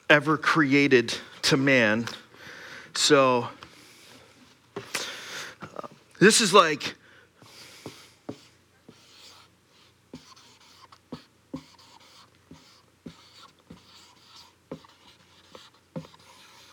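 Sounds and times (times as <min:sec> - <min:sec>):
speech: 0:00.1 - 0:02.2, 0:02.9 - 0:03.6, 0:06.2 - 0:07.0
very large Sharpie marker writing on a surface: 0:08.3 - 0:16.7.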